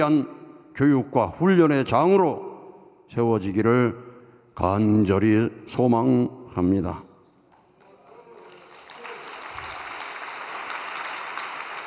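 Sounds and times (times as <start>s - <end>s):
speech: 0.0s - 2.5s, 3.1s - 4.0s, 4.6s - 7.1s
gathered audience clapping: 7.5s - 11.8s.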